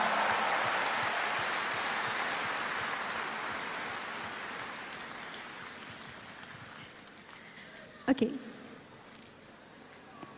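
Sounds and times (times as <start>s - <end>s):
large crowd applause: 0.0s - 7.9s
speech: 8.1s - 8.5s.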